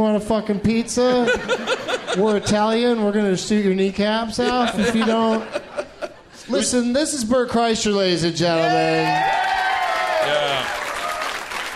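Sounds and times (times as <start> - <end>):
speech: 0.0 - 5.7, 6.5 - 9.4
laughter: 1.0 - 6.9
audience voices and whoops: 8.5 - 11.5
audience applause: 8.6 - 11.7.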